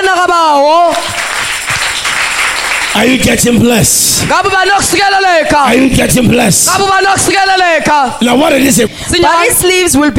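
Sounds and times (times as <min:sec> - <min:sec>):
church congregation clapping: 0:00.0 - 0:05.3
speech: 0:03.0 - 0:10.1.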